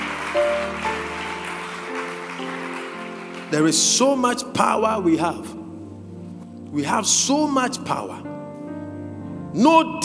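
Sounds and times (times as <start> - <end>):
audience clapping: 0.0 - 4.1
speech: 3.5 - 5.6, 6.8 - 8.3, 9.5 - 10.0.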